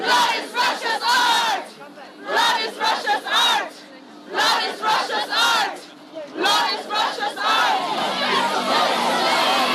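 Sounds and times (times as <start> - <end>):
feminist activists chanting a protest slogan: 0.0 - 9.7.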